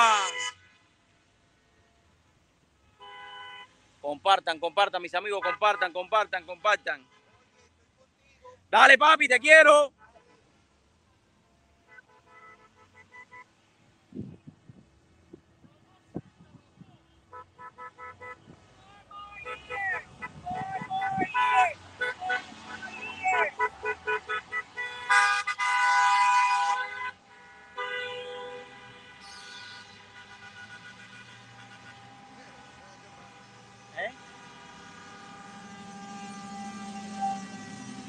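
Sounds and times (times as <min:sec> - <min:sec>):
car horns honking in a caravan: 0:00.0 - 0:00.9, 0:02.8 - 0:07.8, 0:11.9 - 0:13.6, 0:17.0 - 0:38.0
speech: 0:04.1 - 0:07.2, 0:08.7 - 0:10.0.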